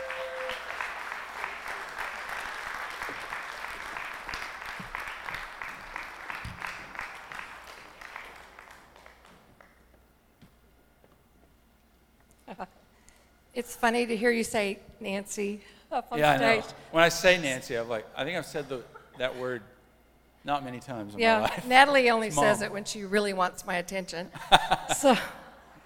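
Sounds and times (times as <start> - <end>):
audience applause: 0.0 - 9.8
speech: 13.6 - 19.7, 20.4 - 25.4
laughter: 24.4 - 25.8.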